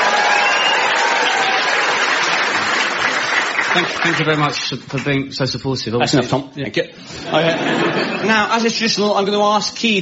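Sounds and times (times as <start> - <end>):
studio audience applause: 0.0 - 5.1
speech: 3.7 - 10.0
laughter: 7.1 - 8.5.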